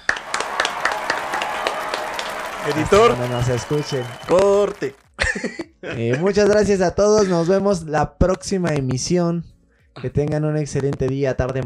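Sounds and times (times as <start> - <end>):
applause sound effect: 0.0 - 5.1
speech: 2.6 - 11.6.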